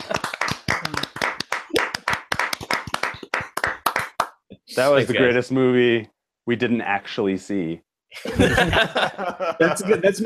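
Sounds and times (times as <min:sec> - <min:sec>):
round of applause: 0:00.0 - 0:04.4
speech: 0:04.8 - 0:10.2
laughter: 0:08.2 - 0:10.2.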